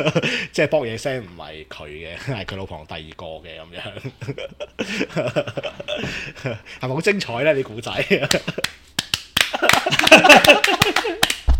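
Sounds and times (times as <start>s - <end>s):
speech: 0.0s - 8.8s
laughter: 3.8s - 6.6s, 9.4s - 11.3s
hands clapping like a sea lion: 8.2s - 11.5s.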